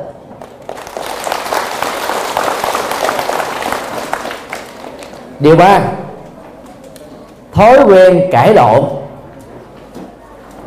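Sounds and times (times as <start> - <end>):
big round of applause: 0.4 - 5.4
speech: 5.4 - 6.0, 7.6 - 9.0.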